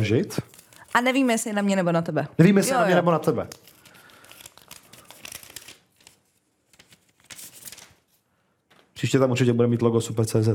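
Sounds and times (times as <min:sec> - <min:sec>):
speech: 0:00.0 - 0:03.7, 0:09.0 - 0:10.5
paper envelope being torn open: 0:00.4 - 0:01.3, 0:03.4 - 0:08.2.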